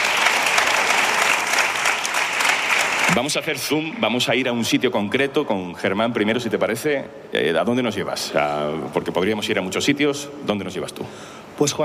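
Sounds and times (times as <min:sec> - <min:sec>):
audience applause: 0:00.0 - 0:04.3
speech: 0:03.1 - 0:11.8.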